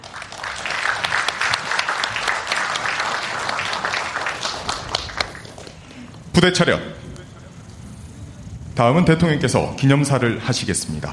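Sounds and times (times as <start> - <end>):
applause: 0.0 - 5.9
speech: 6.4 - 7.0, 8.8 - 11.1.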